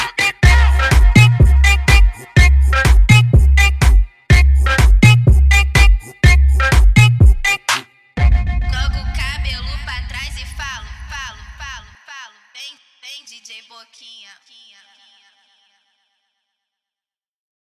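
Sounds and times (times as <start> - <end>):
mega funk automotivo music: 0.0 - 9.7.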